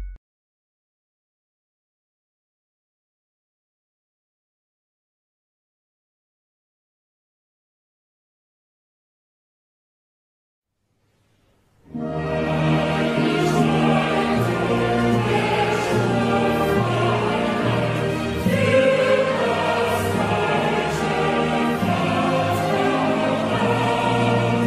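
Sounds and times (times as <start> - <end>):
national anthem: 11.9 - 24.6.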